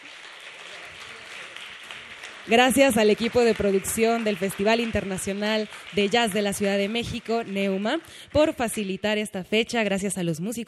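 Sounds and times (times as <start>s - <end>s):
audience applause: 0.0s - 8.2s
speech: 2.5s - 10.6s.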